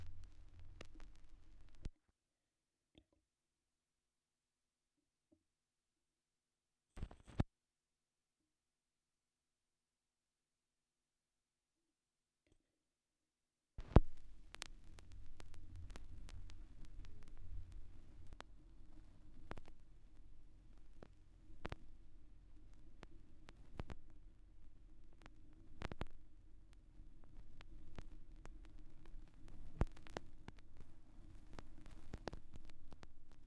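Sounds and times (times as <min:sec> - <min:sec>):
vinyl record noise: 0:00.0 - 0:01.9, 0:07.0 - 0:07.4, 0:13.8 - 0:33.4.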